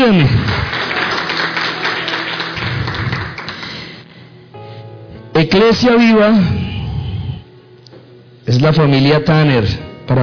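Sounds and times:
speech: 0:00.0 - 0:00.8, 0:05.6 - 0:06.6, 0:08.5 - 0:10.2
audience applauding: 0:00.1 - 0:04.0.

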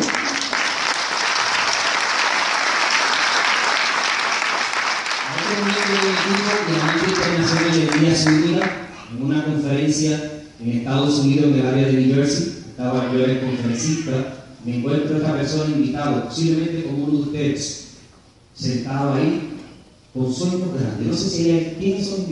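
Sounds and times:
audience applause: 0:00.0 - 0:08.8
speech: 0:10.0 - 0:17.9, 0:18.6 - 0:19.4, 0:20.2 - 0:22.3.

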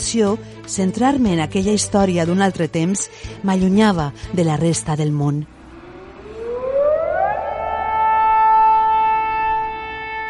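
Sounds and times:
speech: 0:00.1 - 0:05.6
camp alarm siren wailing: 0:05.5 - 0:10.2.

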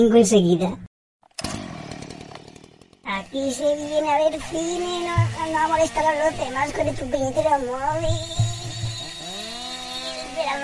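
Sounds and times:
speech: 0:00.0 - 0:00.9, 0:03.3 - 0:08.4, 0:10.4 - 0:10.6
chainsaw running: 0:01.2 - 0:10.6.

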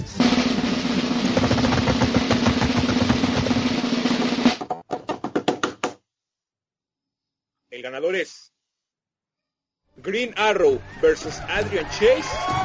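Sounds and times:
drum roll: 0:00.0 - 0:04.8
drum hits: 0:00.0 - 0:05.7
speech: 0:07.8 - 0:08.5, 0:10.0 - 0:12.6.

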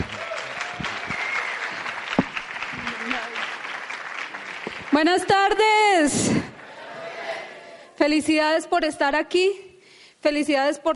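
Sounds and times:
audience applause: 0:00.0 - 0:05.6
speech: 0:05.0 - 0:06.4, 0:08.0 - 0:09.6, 0:10.2 - 0:10.9.

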